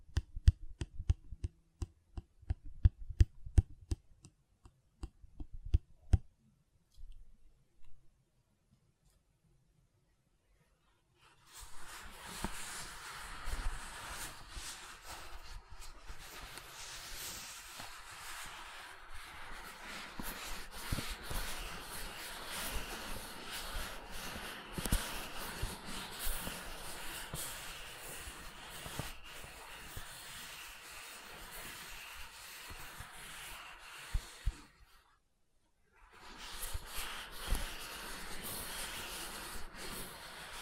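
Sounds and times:
soft silicon taps and clicks: 0:00.0 - 0:08.0
silicon rubbing and scraping: 0:11.2 - 0:35.2, 0:36.0 - 0:40.5.

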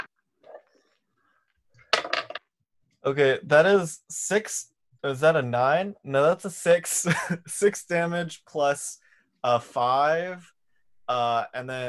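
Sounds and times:
dice rattling and tumbling across a table: 0:01.9 - 0:02.5
speech: 0:03.0 - 0:10.5, 0:11.1 - 0:11.8.

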